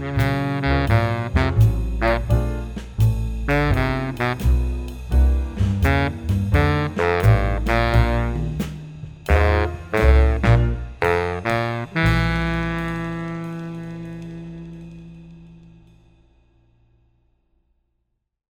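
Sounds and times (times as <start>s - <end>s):
swing baritone saxophone: 0.0s - 15.8s.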